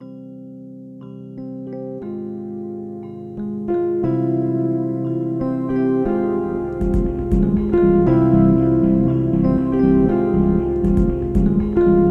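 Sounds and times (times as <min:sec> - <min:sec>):
music loop at 119 BPM: 0:02.4 - 0:12.0.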